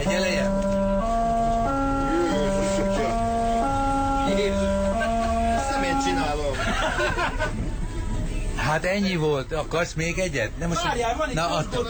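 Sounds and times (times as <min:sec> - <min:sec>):
vehicle horn honking a tune: 0:00.0 - 0:06.5
laughter: 0:04.7 - 0:07.7
speech: 0:08.7 - 0:11.8.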